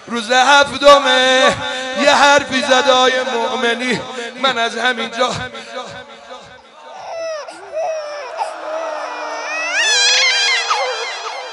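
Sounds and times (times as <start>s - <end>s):
speech: 0.1s - 5.6s
nursing infant crying: 6.8s - 11.5s.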